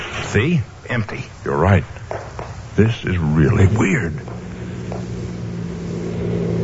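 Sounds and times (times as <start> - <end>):
speech: 0.3 - 2.0, 2.8 - 4.4
car approaching: 3.2 - 6.5.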